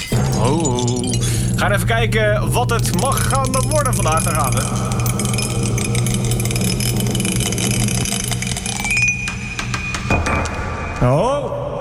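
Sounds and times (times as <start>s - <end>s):
die rolling and falling off: 0.0s - 10.6s
steady low hum: 0.0s - 10.6s
speech: 0.4s - 5.0s, 11.0s - 11.6s.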